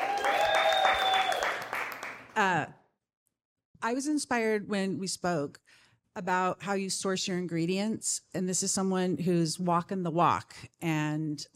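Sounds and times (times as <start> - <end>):
audience clapping at a San Diego Startup Week 2023 event: 0.0 - 2.4
speech: 2.4 - 2.8, 3.8 - 11.5.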